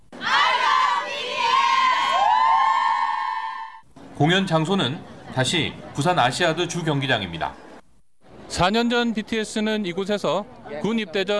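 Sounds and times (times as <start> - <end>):
large crowd of fans outside a concert venue cheering and screaming: 0.2 - 3.8
speech: 4.2 - 7.6, 8.5 - 11.3
laughter: 4.5 - 7.0.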